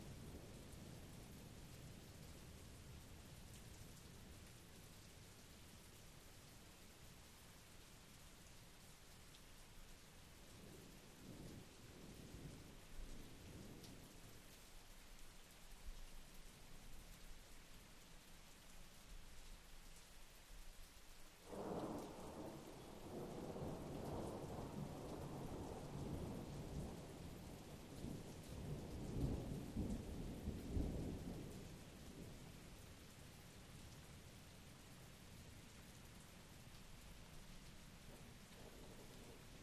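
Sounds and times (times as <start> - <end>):
rain at Blue Mountain Lake Adirondacks New York: 0.0 - 39.6
continuous thunder at Blue Mountain Lake Adirondacks New York: 10.5 - 14.4, 21.4 - 32.8, 37.1 - 39.6.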